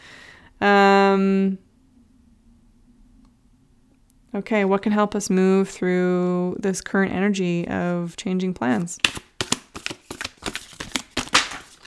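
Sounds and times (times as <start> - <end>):
speech: 0.6 - 1.6, 4.4 - 9.3
Starseed Oracle deck cards being shuffled: 8.7 - 11.8.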